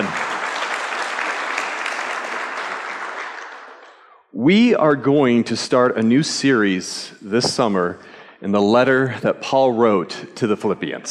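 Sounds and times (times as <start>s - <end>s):
crowd applause: 0.0s - 4.0s
speech: 4.4s - 11.0s.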